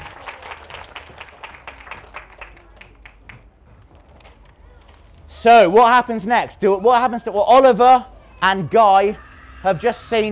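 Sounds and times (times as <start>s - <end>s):
audience applauding: 0.0s - 3.4s
speech: 5.4s - 10.3s.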